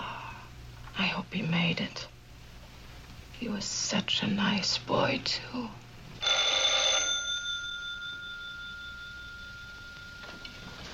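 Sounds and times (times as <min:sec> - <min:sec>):
speech: 0:01.2 - 0:02.1, 0:03.4 - 0:05.8
telephone ringing: 0:06.2 - 0:10.9.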